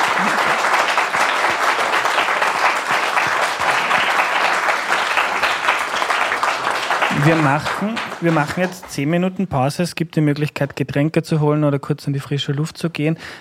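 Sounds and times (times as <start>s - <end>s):
audience applause: 0.0s - 9.0s
speech: 7.2s - 13.3s.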